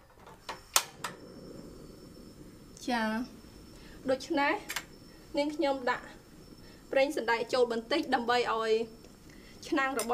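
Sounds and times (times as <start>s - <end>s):
faint low noise: 0.0s - 10.1s
gas stove burner igniter clicking: 0.5s - 1.2s, 4.6s - 5.0s
speech: 2.8s - 3.4s, 4.0s - 6.2s, 6.9s - 9.0s, 9.6s - 10.1s.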